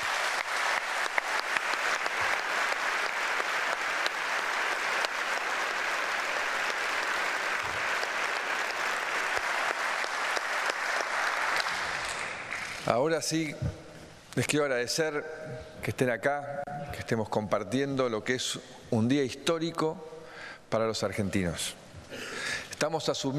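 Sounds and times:
large audience applause: 0.0 - 12.8
speech: 12.9 - 13.8, 14.4 - 20.1, 20.7 - 21.8, 22.8 - 23.3.

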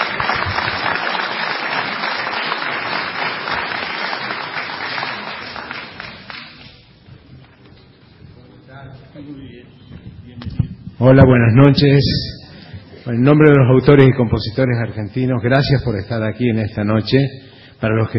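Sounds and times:
audience applause: 0.0 - 6.8
speech: 11.0 - 12.4, 13.0 - 18.1.

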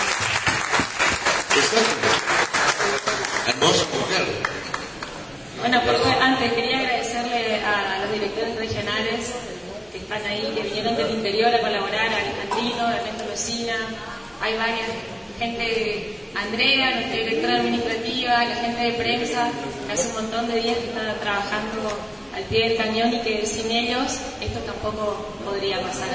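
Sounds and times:
audience applause: 0.0 - 5.2
speech: 1.6 - 2.1, 3.6 - 4.6, 5.6 - 26.1.

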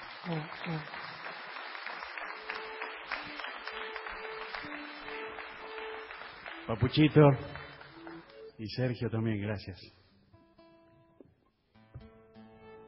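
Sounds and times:
audience applause: 0.0 - 8.5
speech: 0.2 - 1.0, 6.7 - 7.6, 8.6 - 10.0.

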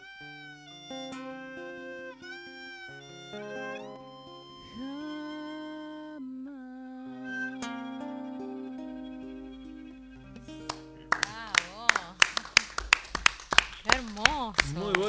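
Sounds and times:
audience applause: 10.6 - 15.0.

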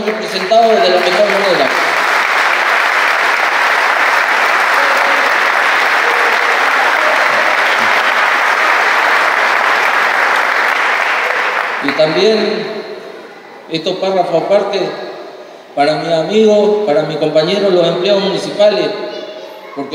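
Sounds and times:
speech: 0.0 - 1.9, 12.0 - 12.8, 13.7 - 15.1, 15.8 - 19.0, 19.8 - 19.9
audience applause: 0.0 - 12.5.

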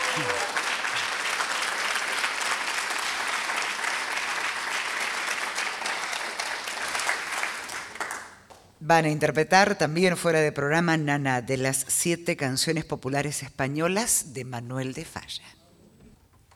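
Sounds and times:
audience applause: 0.0 - 8.4
speech: 0.2 - 0.5, 8.8 - 15.6.

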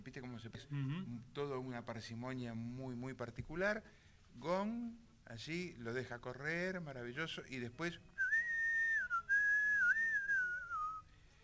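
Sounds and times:
speech: 0.0 - 8.1
person whistling in imitation of a flute: 8.2 - 11.1.

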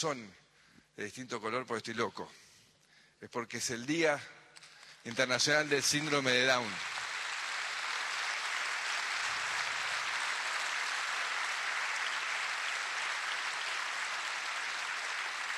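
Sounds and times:
speech: 0.0 - 0.4, 1.0 - 2.5, 3.2 - 4.4, 5.0 - 6.9
audience applause: 5.5 - 15.5.

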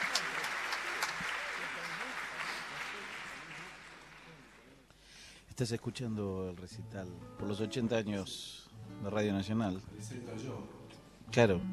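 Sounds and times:
audience standing ovation applause: 0.0 - 4.8
speech: 5.6 - 11.7.

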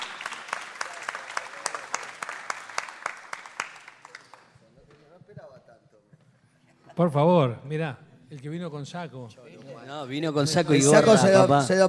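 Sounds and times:
audience applause: 0.0 - 4.6
speech: 7.0 - 11.8.

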